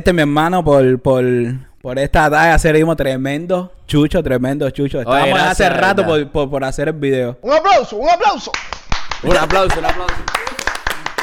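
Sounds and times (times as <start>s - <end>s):
speech: 0.0s - 10.5s
audience applause: 8.9s - 11.2s.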